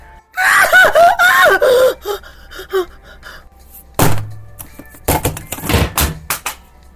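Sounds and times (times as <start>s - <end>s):
woman screaming: 0.4s - 2.9s
iPad dropping: 4.0s - 6.6s.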